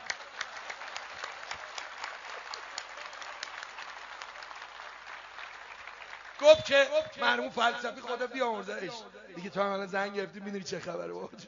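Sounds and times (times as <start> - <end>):
audience clapping during a spoken talk: 0.0 - 8.3
speech: 6.4 - 11.4.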